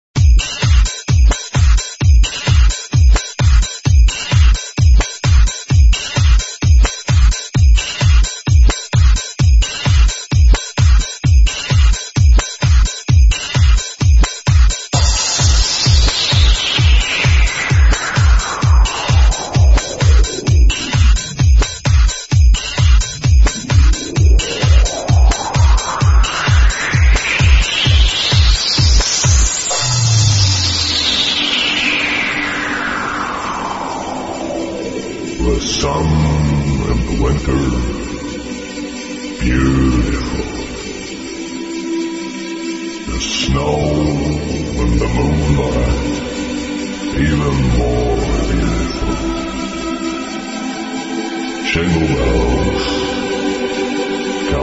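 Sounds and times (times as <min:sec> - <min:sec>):
christmas song remix: 0:00.2 - 0:54.6.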